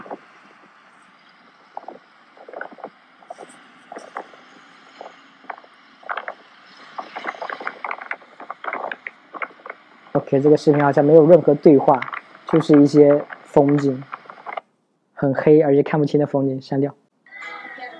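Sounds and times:
wind recorded from a moving tuk-tuk: 0:00.0 - 0:17.0
speech: 0:10.3 - 0:14.1, 0:15.2 - 0:17.0.

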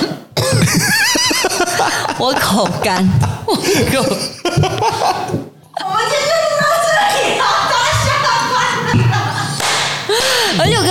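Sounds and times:
cough: 0:00.0 - 0:01.0
laughter: 0:00.5 - 0:10.9
speech: 0:02.2 - 0:05.4.

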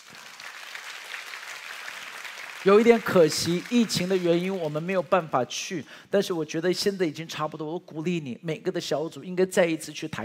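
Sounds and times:
audience applause: 0:00.0 - 0:04.9
speech: 0:02.6 - 0:10.2.

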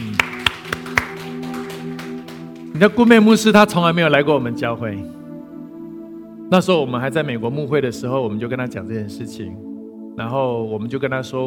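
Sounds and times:
sharp claps: 0:00.0 - 0:03.2
speech: 0:02.8 - 0:05.2, 0:06.5 - 0:11.4.

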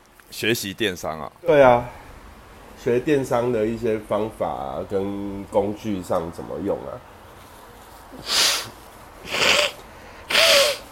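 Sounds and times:
speech: 0:00.3 - 0:02.0, 0:02.8 - 0:07.1, 0:08.1 - 0:08.4
nose blowing: 0:08.1 - 0:10.9.

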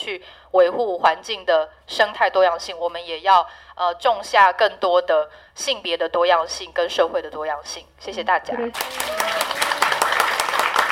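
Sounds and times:
speech: 0:00.1 - 0:09.7
warm applause from Korean older women: 0:08.7 - 0:10.9.

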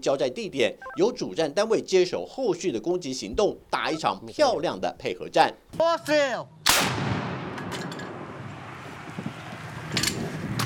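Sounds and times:
speech: 0:00.0 - 0:07.0
recoilless gun fired by Ukrainian mechanized brigade near Bakhmut at Russian positions: 0:06.7 - 0:08.3
smaller burst: 0:06.7 - 0:08.8.

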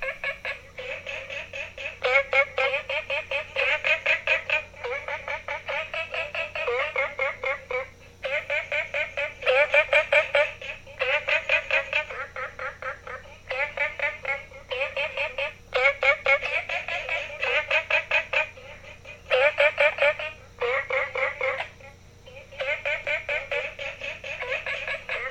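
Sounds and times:
frogs calling beside a guesthouse: 0:00.0 - 0:25.3.

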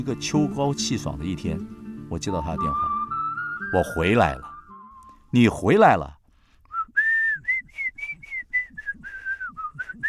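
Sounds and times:
speech: 0:00.0 - 0:02.9, 0:03.7 - 0:04.5, 0:05.3 - 0:06.2
person whistling a signal tune: 0:02.6 - 0:05.2, 0:06.7 - 0:10.0.

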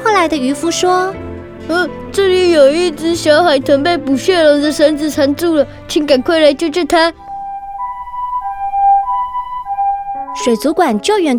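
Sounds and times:
speech: 0:00.2 - 0:07.2, 0:10.4 - 0:11.3
ambulance siren wailing in a two-tone pattern: 0:07.1 - 0:11.1.

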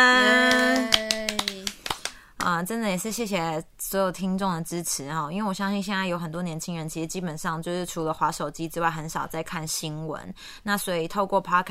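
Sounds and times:
hand clapping: 0:00.2 - 0:02.5
speech: 0:02.6 - 0:11.6.

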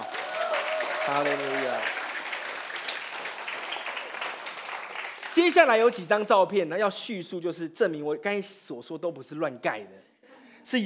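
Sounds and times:
audience applause: 0:00.0 - 0:05.8
speech: 0:01.1 - 0:02.0, 0:05.4 - 0:10.8.

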